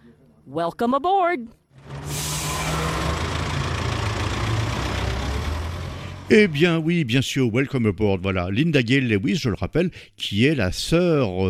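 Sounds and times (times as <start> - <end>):
speech: 0.5 - 1.6, 6.3 - 11.4
bus engine idling: 1.8 - 7.0.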